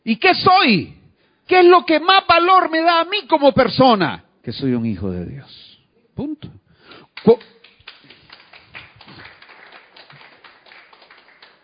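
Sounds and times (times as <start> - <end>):
speech: 0.0 - 5.6, 6.2 - 6.6, 7.2 - 7.6
sparse applause from a church congregation during a sermon: 7.2 - 11.6.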